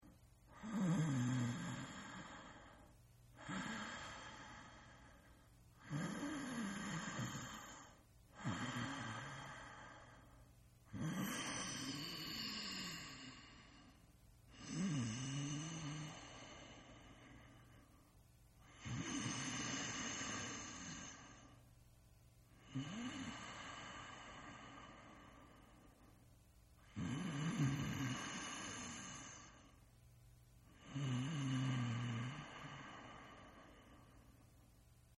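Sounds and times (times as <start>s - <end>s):
person snoring: 0.5s - 5.2s, 5.8s - 10.2s, 10.9s - 13.9s, 14.5s - 17.4s, 18.6s - 21.5s, 22.6s - 25.6s, 26.8s - 29.8s, 30.7s - 34.2s.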